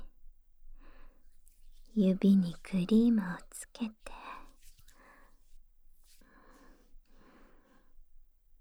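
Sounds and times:
cream ear massage sounds: 1.2 - 7.1.

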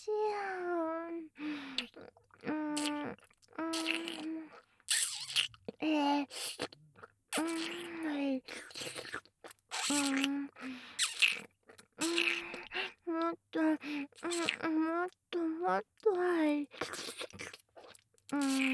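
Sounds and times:
oral sex sounds: 0.2 - 18.7
nipple licking: 1.5 - 13.0, 13.8 - 14.9, 16.0 - 18.7
ear licking: 1.7 - 10.4, 11.0 - 12.9, 16.7 - 18.7.

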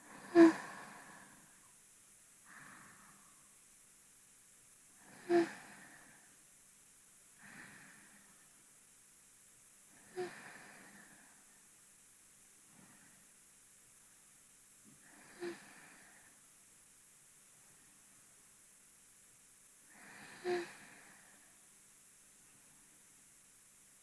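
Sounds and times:
person breathing in sleep, binaural: 0.0 - 1.6, 2.4 - 3.5, 5.0 - 6.4, 7.4 - 8.4, 9.9 - 11.6, 15.0 - 16.4, 19.9 - 21.6.

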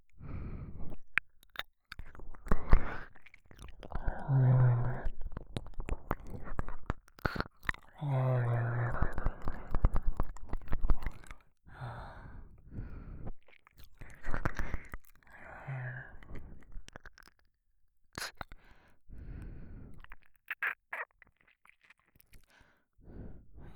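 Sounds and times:
man breathing heavily: 0.1 - 1.1, 10.9 - 16.8, 18.2 - 20.2, 22.3 - 23.7
man licking ear on left side: 0.9 - 11.4, 13.2 - 15.4, 18.1 - 18.8, 19.9 - 22.6.

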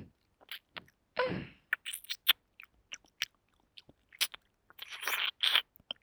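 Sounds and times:
ear licking: 0.4 - 0.9, 1.7 - 5.8.

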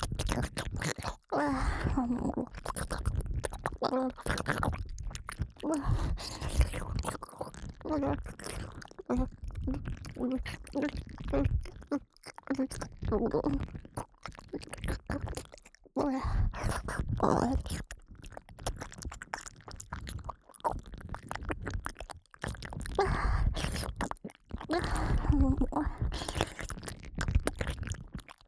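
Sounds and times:
ASMR ear licking in the right ear: 0.0 - 28.4.

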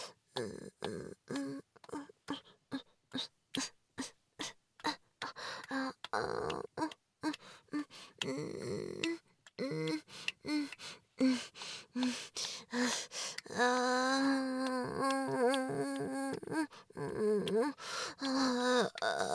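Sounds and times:
person moaning: 0.4 - 2.4, 5.6 - 11.4, 12.7 - 19.3.

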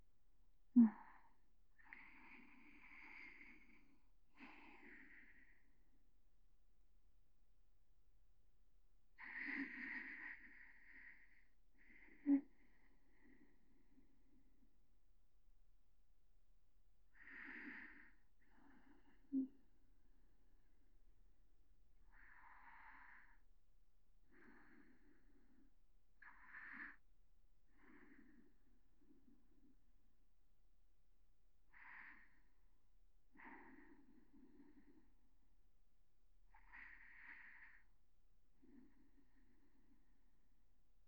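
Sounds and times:
person breathing in sleep: 0.8 - 5.8, 9.2 - 14.4, 17.1 - 19.8, 22.0 - 23.5, 24.2 - 27.0, 27.7 - 29.7, 31.6 - 35.2, 36.5 - 40.3.

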